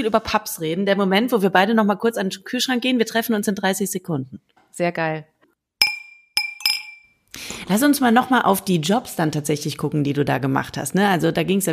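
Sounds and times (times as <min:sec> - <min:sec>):
speech: 0:00.0 - 0:05.3, 0:07.4 - 0:11.7
wine glass clinking: 0:05.8 - 0:07.2.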